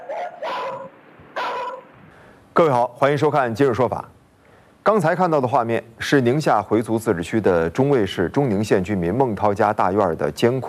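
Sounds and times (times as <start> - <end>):
guard dog barking furiously in a residential courtyard at night: 1.4 - 1.9
speech: 2.6 - 4.2, 4.8 - 10.6.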